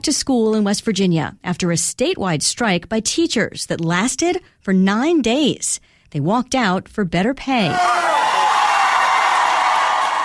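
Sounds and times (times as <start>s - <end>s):
speech: 0.0s - 8.5s
crowd of striking West Virginia teachers cheering: 7.7s - 10.2s.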